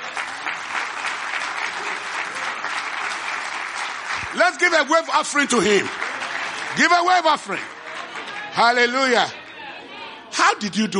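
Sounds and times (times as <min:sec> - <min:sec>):
audience applause: 0:00.0 - 0:09.4
speech: 0:04.4 - 0:06.0, 0:06.8 - 0:07.7, 0:08.6 - 0:09.4, 0:10.4 - 0:10.9.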